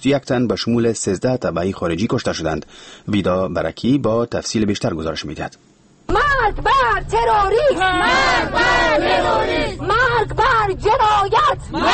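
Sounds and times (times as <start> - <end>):
speech: 0.0 - 5.7, 6.4 - 11.9
protesters in Kabul chanting slogans condemning a suicide attack: 7.5 - 10.7, 11.3 - 11.9.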